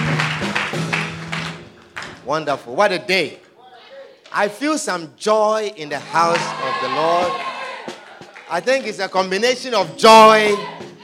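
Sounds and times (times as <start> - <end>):
crowd clapping: 0.0 - 2.3, 6.0 - 10.7
speech: 2.3 - 3.4, 4.3 - 7.5, 8.5 - 11.0.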